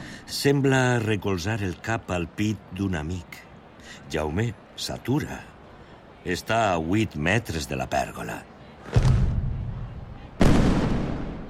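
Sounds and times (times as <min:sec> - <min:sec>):
speech: 0:00.3 - 0:03.4, 0:04.0 - 0:05.5, 0:06.2 - 0:09.1
firework warning-rocket blasts: 0:10.4 - 0:11.4.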